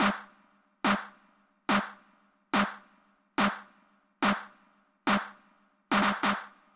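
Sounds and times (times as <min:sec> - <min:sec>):
club techno snare clap: 0:00.0 - 0:00.3, 0:00.9 - 0:02.0, 0:02.6 - 0:02.8, 0:03.4 - 0:04.5, 0:05.1 - 0:06.6.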